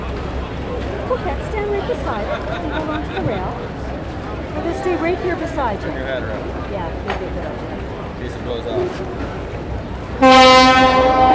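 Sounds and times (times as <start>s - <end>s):
laughter: 0.0s - 4.0s
speech: 1.1s - 3.8s, 4.6s - 9.4s, 10.2s - 11.3s
ship's horn blast: 8.7s - 11.3s.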